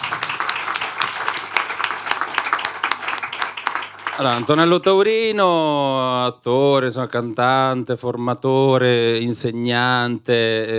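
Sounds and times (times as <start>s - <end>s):
audience applause: 0.0s - 4.8s
speech: 4.2s - 10.7s.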